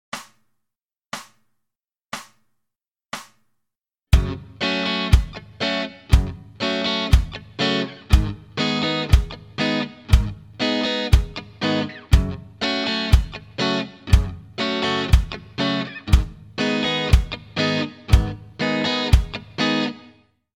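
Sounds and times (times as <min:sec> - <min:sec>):
slow reggae music: 0:04.2 - 0:20.0.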